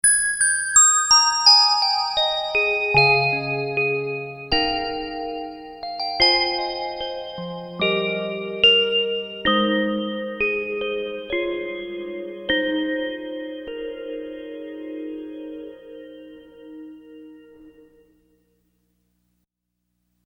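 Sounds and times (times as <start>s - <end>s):
glassy bells: 0.0s - 15.6s.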